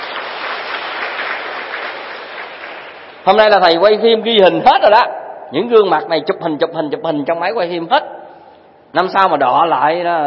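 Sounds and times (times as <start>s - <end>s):
audience applause at a Vietnamese gathering: 0.0s - 3.2s
speech: 3.2s - 8.1s, 8.9s - 10.2s.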